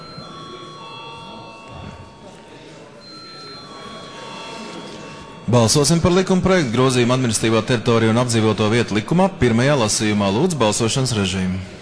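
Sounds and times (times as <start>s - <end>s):
parliamentary voting bell ringing: 0.0s - 11.3s
faint murmur of voices: 0.0s - 11.8s
speech: 5.5s - 11.8s.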